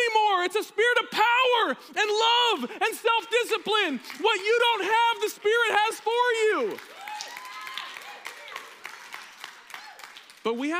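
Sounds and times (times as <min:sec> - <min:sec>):
speech: 0:00.4 - 0:07.0, 0:10.4 - 0:10.7
crowd clapping: 0:03.1 - 0:10.7
scattered voices whooping and cheering: 0:06.8 - 0:10.1.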